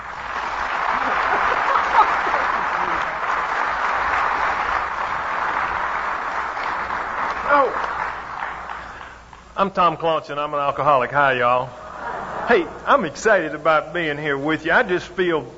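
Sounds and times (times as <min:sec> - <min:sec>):
audience applause at a meeting: 0:00.0 - 0:09.6
laughter: 0:00.6 - 0:04.1, 0:11.8 - 0:13.2
speech: 0:09.6 - 0:11.8, 0:12.5 - 0:15.5.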